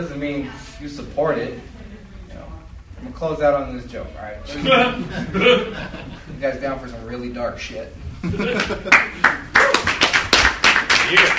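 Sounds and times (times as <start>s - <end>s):
speech: 0.0s - 9.4s, 11.1s - 11.3s
laughter: 4.5s - 6.4s, 8.2s - 9.4s
audience clapping: 8.5s - 11.3s.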